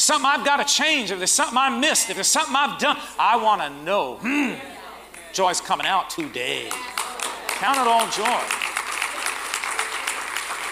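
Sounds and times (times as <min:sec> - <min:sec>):
speech: 0:00.0 - 0:07.0, 0:07.6 - 0:08.6
audience clapping: 0:06.2 - 0:10.7.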